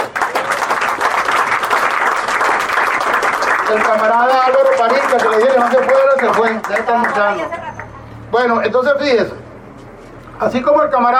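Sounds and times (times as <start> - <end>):
audience applause: 0.0 - 7.9
speech: 3.7 - 7.6, 8.3 - 9.4, 10.4 - 11.1.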